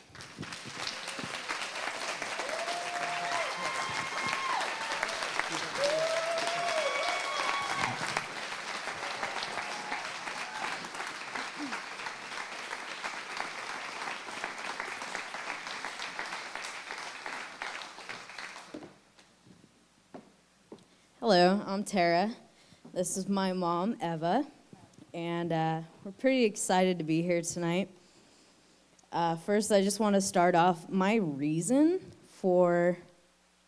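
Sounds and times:
audience applause welcoming a mother and daughter to the stage: 0:00.0 - 0:18.8
high cheers: 0:00.8 - 0:16.7
speech: 0:21.8 - 0:22.4, 0:23.0 - 0:24.6, 0:25.2 - 0:28.0, 0:29.2 - 0:33.1.

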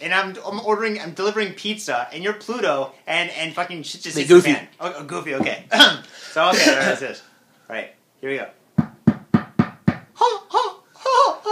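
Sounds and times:
speech: 0:00.0 - 0:08.6
knocking on a door: 0:08.8 - 0:10.1.

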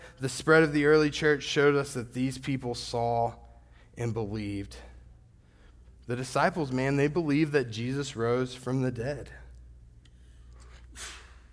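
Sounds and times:
speech: 0:00.2 - 0:03.4, 0:04.0 - 0:04.9, 0:06.1 - 0:09.4
sneeze: 0:10.9 - 0:11.5.

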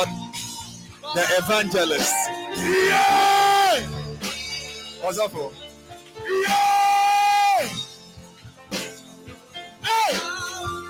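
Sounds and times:
speech: 0:01.1 - 0:03.9, 0:05.0 - 0:05.6
crowd cheering: 0:02.0 - 0:03.9
person shouting: 0:02.0 - 0:03.9, 0:06.2 - 0:07.8.

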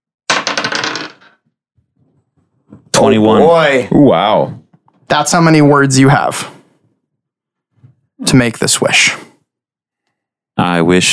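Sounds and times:
dice clattering across a hard surface: 0:00.3 - 0:01.5
speech: 0:03.0 - 0:06.6, 0:08.2 - 0:09.3, 0:10.6 - 0:11.1.

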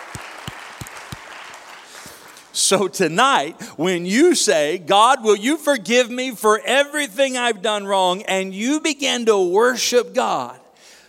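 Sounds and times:
congregation clapping at a church service: 0:00.0 - 0:03.2
speech: 0:02.6 - 0:10.6.

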